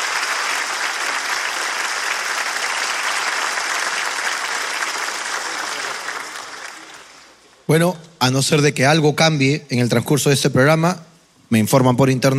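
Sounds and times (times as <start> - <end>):
audience applause: 0.0 - 7.4
speech: 7.7 - 12.3.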